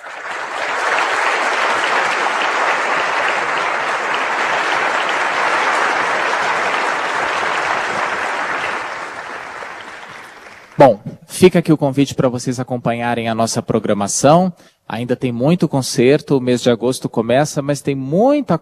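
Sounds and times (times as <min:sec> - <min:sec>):
audience applause: 0:00.0 - 0:10.9
speech: 0:10.8 - 0:18.6.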